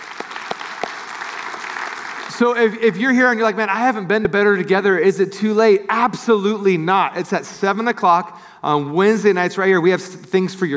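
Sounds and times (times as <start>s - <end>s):
audience cheering: 0.0s - 2.5s
audience applause: 0.0s - 2.8s
speech: 2.4s - 10.7s.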